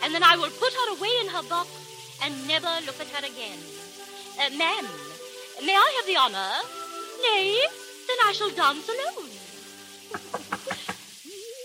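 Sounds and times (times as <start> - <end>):
speech: 0.1 - 3.8, 4.4 - 9.5, 10.1 - 10.8
knocking on a door: 10.1 - 11.0.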